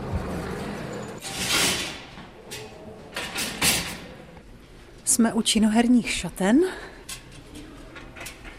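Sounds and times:
elevator doors sliding open: 0.0s - 4.2s
speech: 5.2s - 7.0s.

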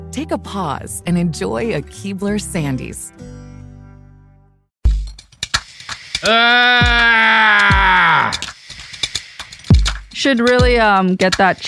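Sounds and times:
speech: 0.1s - 3.4s, 6.2s - 8.5s, 10.2s - 11.6s
person yelling: 6.2s - 8.4s.

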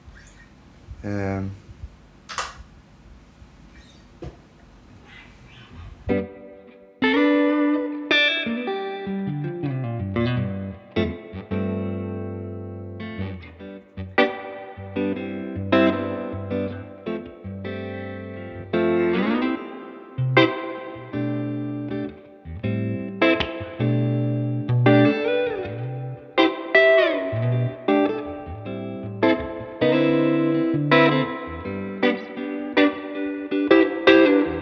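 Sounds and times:
speech: 1.0s - 1.6s
electric guitar with Strat-style sound: 5.5s - 34.6s.

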